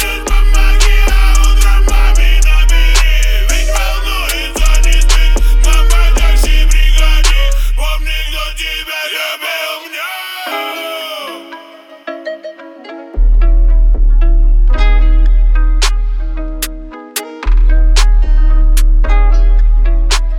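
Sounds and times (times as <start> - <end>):
screwed low bass at 37 to 41 Hz: 0.0 - 8.8, 13.2 - 16.9, 17.5 - 20.3.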